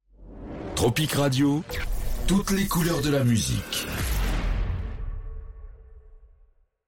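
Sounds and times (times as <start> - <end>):
radio station ID jingle: 0.6 - 4.7.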